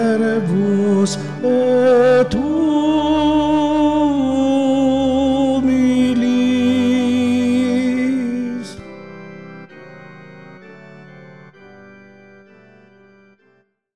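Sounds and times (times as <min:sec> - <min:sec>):
tenor choir singing: 0:00.0 - 0:08.8.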